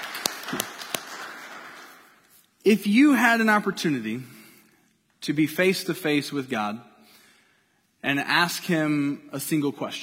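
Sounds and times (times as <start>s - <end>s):
one person clapping hands: 0.0s - 2.3s
speech: 2.6s - 4.4s, 5.2s - 6.9s, 8.0s - 10.0s.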